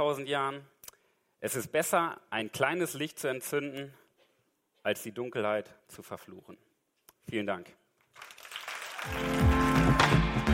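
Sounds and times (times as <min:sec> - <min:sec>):
speech: 0:00.0 - 0:00.8, 0:01.4 - 0:04.0, 0:04.8 - 0:08.3, 0:09.0 - 0:09.4
audience applause after a talk: 0:08.1 - 0:10.5.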